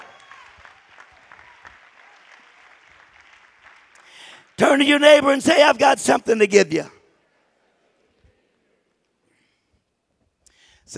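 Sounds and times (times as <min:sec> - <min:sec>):
audience clapping hands: 0:00.0 - 0:05.7
speech: 0:04.6 - 0:07.0.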